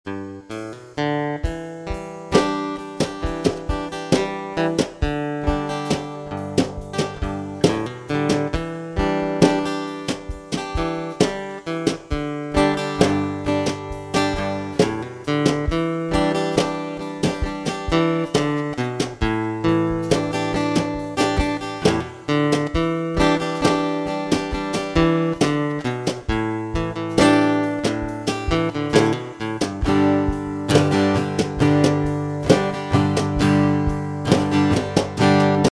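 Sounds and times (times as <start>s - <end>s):
acoustic solo mix: 0.1s - 35.7s.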